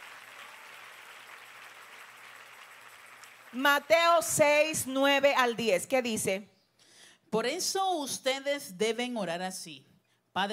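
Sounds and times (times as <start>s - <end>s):
audience applause: 0.0s - 3.6s
speech: 3.5s - 6.5s, 7.3s - 10.5s.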